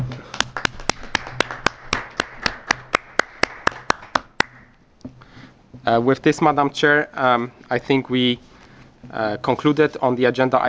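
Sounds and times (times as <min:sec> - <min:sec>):
small group applauding to approve an election: 0:00.0 - 0:04.7
room hum: 0:00.0 - 0:10.6
speech: 0:05.9 - 0:08.5, 0:09.1 - 0:10.6.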